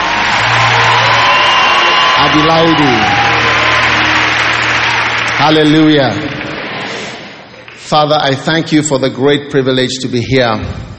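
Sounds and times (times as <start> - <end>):
audience applause and cheering: 0.0 - 8.5
speech: 2.2 - 3.2, 5.4 - 6.4, 7.9 - 10.9.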